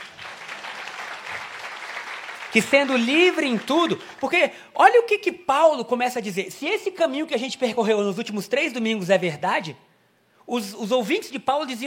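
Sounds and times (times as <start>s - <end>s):
applause: 0.0s - 4.4s
speech: 2.5s - 9.9s, 10.5s - 11.8s.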